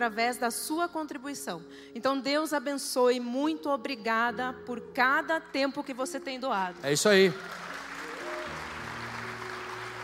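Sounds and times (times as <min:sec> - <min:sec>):
speech: 0:00.0 - 0:07.6
audience applause: 0:06.8 - 0:10.0.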